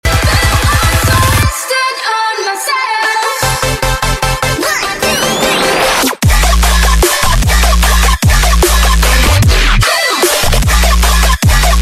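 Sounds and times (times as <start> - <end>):
remix music: 0.0 - 11.8.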